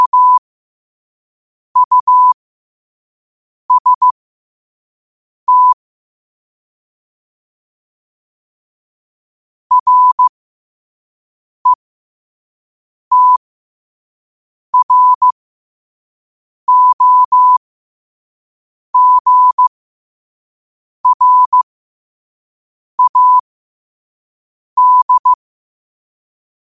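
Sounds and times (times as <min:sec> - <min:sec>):
morse code at 5 wpm: 0:00.0 - 0:00.4, 0:01.8 - 0:02.4, 0:03.7 - 0:04.1, 0:05.5 - 0:05.8, 0:09.7 - 0:10.3, 0:13.1 - 0:13.4, 0:14.8 - 0:15.4, 0:16.7 - 0:17.6, 0:19.0 - 0:19.7, 0:21.0 - 0:21.6, 0:23.0 - 0:23.4, 0:24.8 - 0:25.4.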